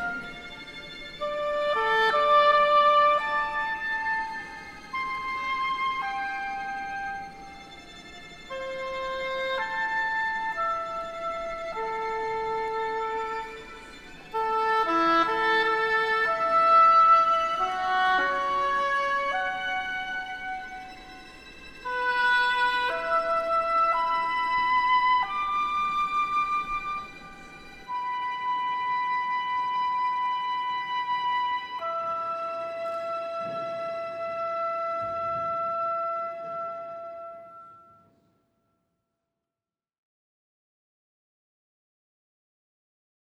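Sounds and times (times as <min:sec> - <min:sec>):
oboe: 0:00.0 - 0:38.3
strings: 0:00.0 - 0:38.3.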